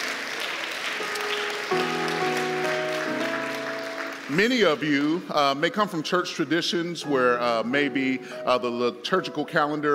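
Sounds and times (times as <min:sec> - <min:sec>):
audience hand clap of praise: 0:00.0 - 0:05.6
speech: 0:04.3 - 0:09.9.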